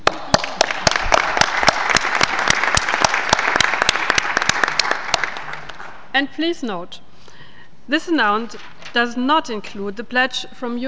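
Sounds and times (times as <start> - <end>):
conference attendees applauding at a pledging conference: 0.1 - 5.9
speech: 6.2 - 7.0, 7.9 - 10.8.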